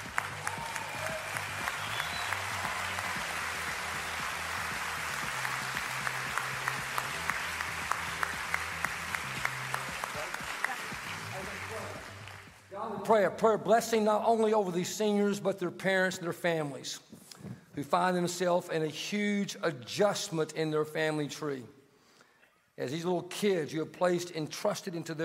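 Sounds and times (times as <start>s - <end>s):
audience applause: 0.0s - 12.7s
speech: 13.1s - 17.1s, 17.8s - 21.8s, 22.8s - 25.2s.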